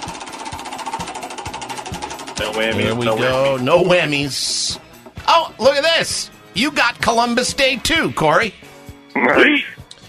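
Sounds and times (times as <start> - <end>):
game show prize wheel spinning and slowing down: 0.0 - 7.6
speech: 2.4 - 9.7.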